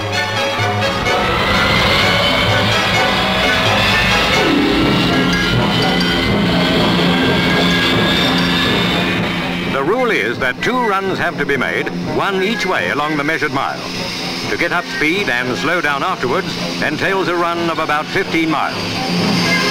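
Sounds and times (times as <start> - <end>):
huge engine starting up: 0.3 - 9.7
speech: 10.4 - 19.6.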